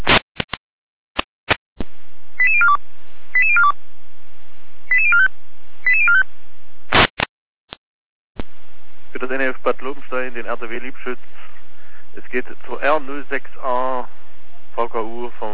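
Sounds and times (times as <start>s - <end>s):
radio static clicks and bursts: 0.0s - 0.6s, 6.9s - 7.3s
emergency dispatch radio alerting tones: 2.4s - 2.8s, 3.4s - 3.7s, 4.9s - 5.3s, 5.9s - 6.2s
radio hiss: 9.2s - 14.1s
speech: 9.3s - 11.5s, 12.2s - 14.2s, 14.8s - 15.5s.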